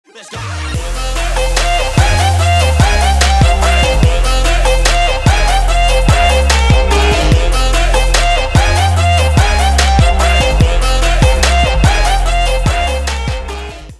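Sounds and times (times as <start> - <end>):
K-pop music: 0.0 - 13.9.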